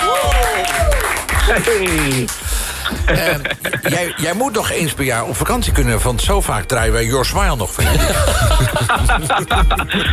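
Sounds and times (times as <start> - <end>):
audience applause: 0.0 - 2.6
laughter: 1.4 - 4.5, 7.8 - 10.1
speech: 1.6 - 10.1.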